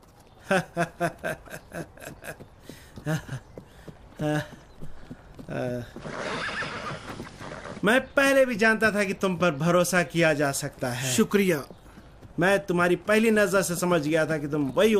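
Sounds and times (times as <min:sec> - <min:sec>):
hoofbeats of a running horse with a loose shoe: 0:00.0 - 0:07.8, 0:09.0 - 0:14.9
laughter: 0:00.4 - 0:03.4
speech: 0:00.5 - 0:01.4, 0:07.9 - 0:11.8, 0:12.4 - 0:14.9
horse whinnying: 0:05.9 - 0:07.9.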